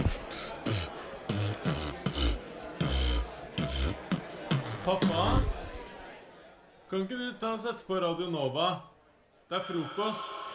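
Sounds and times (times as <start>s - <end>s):
beatboxing: 0.0s - 5.7s
speech: 4.9s - 5.6s, 6.9s - 8.9s, 9.5s - 10.4s.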